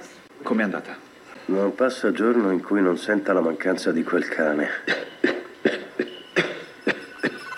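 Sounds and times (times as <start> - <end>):
speech: 0.5 - 5.1
patient coughing: 4.8 - 7.5.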